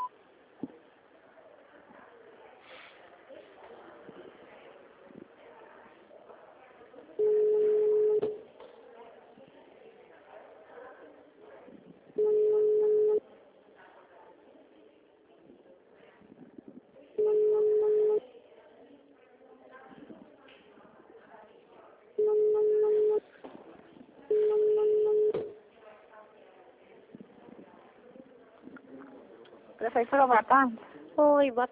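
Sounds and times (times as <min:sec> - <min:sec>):
low murmur: 0:00.0 - 0:31.6
telephone line tones after automated menu: 0:07.2 - 0:08.4, 0:12.2 - 0:13.2, 0:17.2 - 0:18.2, 0:22.2 - 0:23.2, 0:24.3 - 0:25.6.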